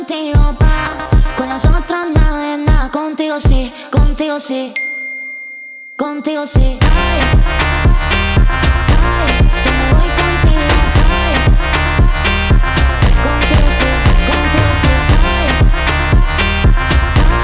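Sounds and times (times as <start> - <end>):
phonk music: 0.4 - 4.2, 6.6 - 17.4.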